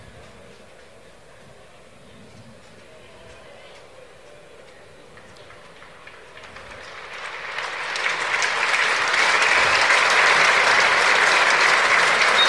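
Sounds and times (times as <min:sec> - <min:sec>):
large stadium crowd applause: 0:05.0 - 0:12.4.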